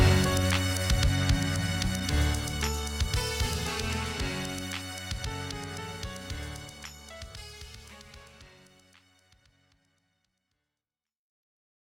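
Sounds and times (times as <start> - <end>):
stringy tune: 0.0 - 9.6.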